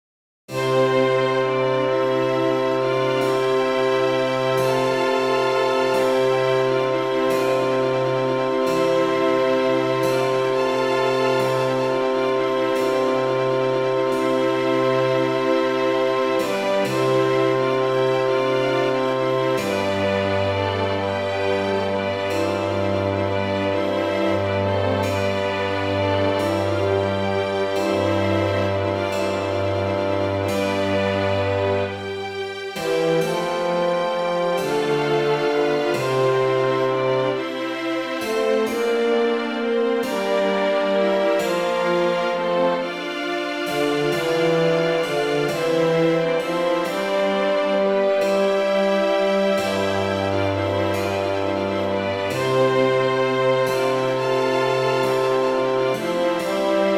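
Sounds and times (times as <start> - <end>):
pastoral orchestral music: 0.5 - 56.9.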